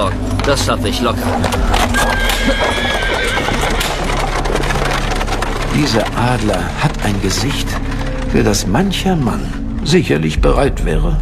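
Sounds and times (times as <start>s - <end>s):
carriage horse hooves clip-clopping: 0.0s - 10.2s
speech: 0.5s - 3.0s, 5.7s - 11.1s
carriage horse whinnying: 1.4s - 5.4s.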